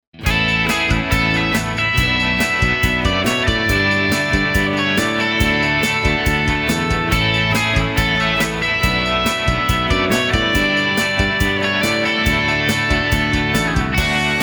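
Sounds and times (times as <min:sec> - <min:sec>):
rock music: 0:00.2 - 0:14.4.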